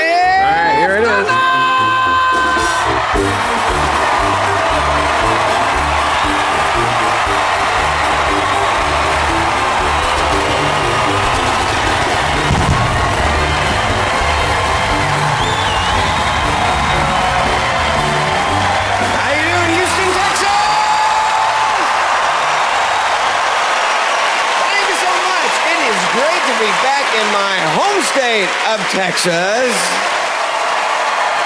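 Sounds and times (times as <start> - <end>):
large audience clapping: 0.0 - 31.4
speech: 29.0 - 30.0.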